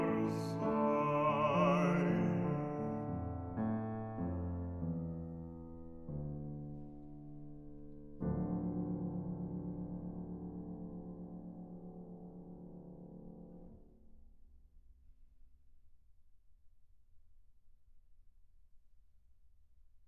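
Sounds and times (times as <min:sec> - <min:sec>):
person singing: 0:00.0 - 0:03.1
piano: 0:00.0 - 0:14.2.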